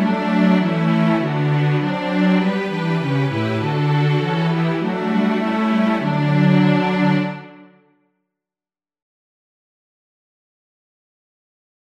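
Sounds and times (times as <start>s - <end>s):
christmas carol: 0.0s - 7.6s.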